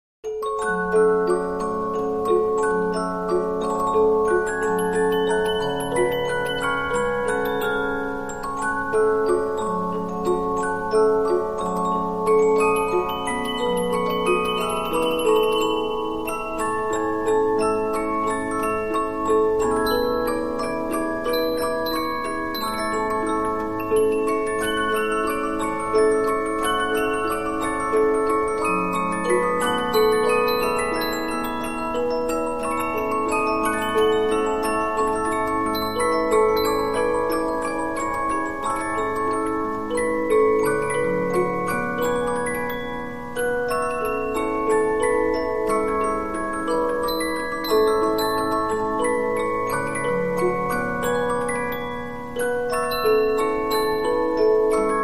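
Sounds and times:
Polyphon 15-inch disc music box playing: 0.3s - 55.0s.

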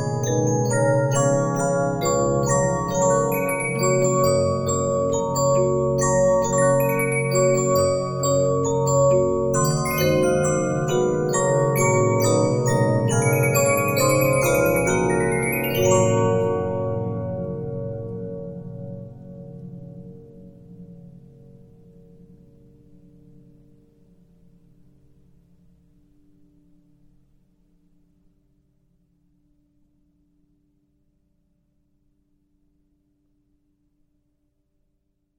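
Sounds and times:
Regina 15-inch disc music box: 0.0s - 19.2s.

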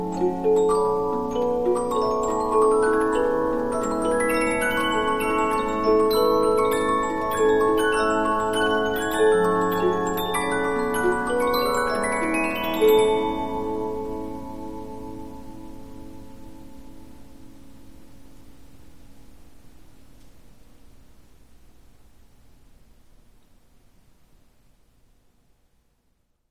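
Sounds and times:
Polyphon 15-inch disc music box playing: 0.0s - 15.6s.

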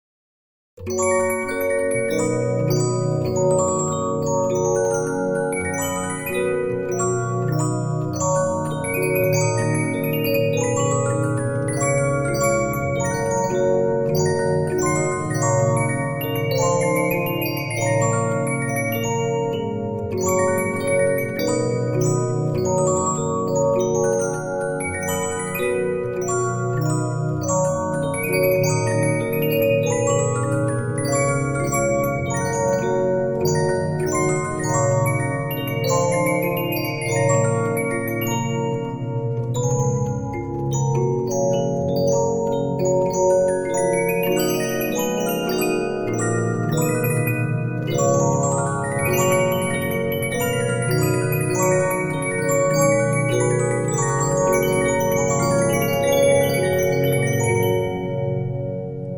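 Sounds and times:
Regina 15-inch disc music box: 0.8s - 59.1s.

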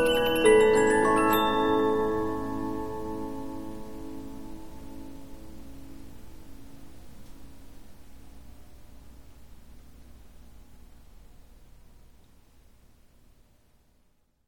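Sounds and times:
Polyphon 15-inch disc music box playing: 0.0s - 4.5s.

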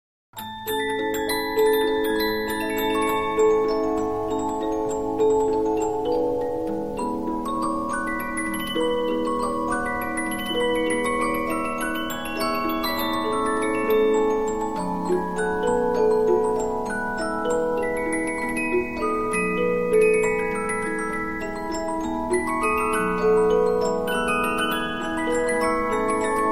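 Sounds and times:
Polyphon 15-inch disc music box playing: 0.4s - 26.5s.

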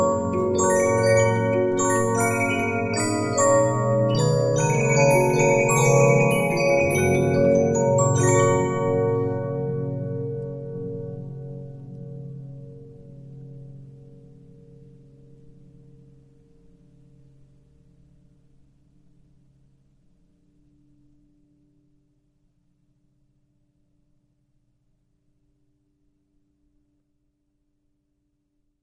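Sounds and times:
Regina 15-inch disc music box: 0.0s - 10.7s.

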